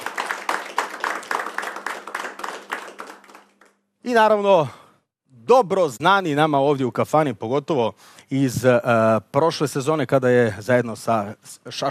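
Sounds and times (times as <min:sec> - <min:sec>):
hand clapping in a kafana tavern welcoming a singer and her band: 0:00.0 - 0:03.8
speech: 0:04.0 - 0:04.8, 0:05.5 - 0:11.8.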